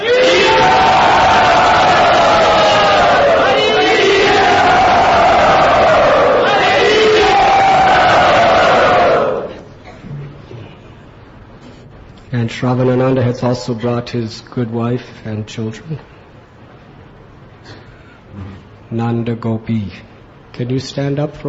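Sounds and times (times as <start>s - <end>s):
temple crowd cheering a welcome: 0.0s - 9.7s
speech: 12.4s - 16.2s, 18.9s - 21.4s.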